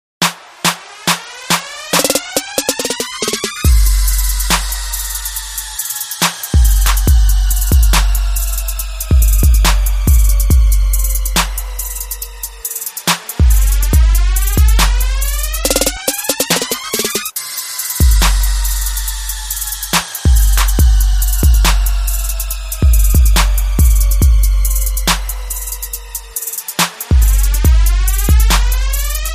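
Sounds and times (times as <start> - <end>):
music beat: 0.2 - 29.3.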